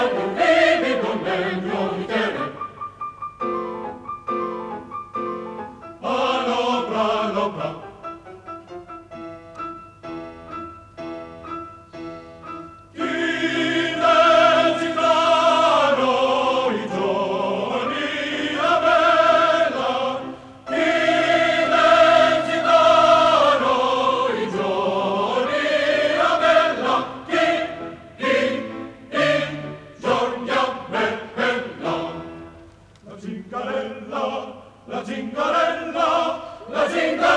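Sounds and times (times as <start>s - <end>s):
opera chorus singing: 0.0s - 2.8s, 6.0s - 8.0s, 13.0s - 37.3s.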